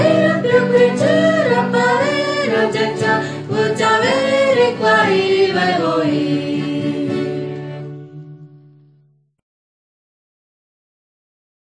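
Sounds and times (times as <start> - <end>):
Guarani Mbya songs: 0.0 - 7.8.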